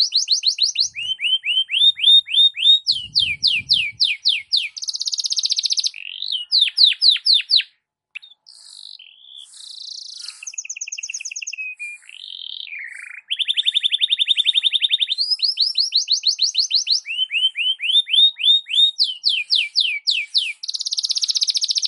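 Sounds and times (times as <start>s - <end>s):
Belgian canary singing: 0.0s - 21.8s
speech: 0.2s - 1.2s.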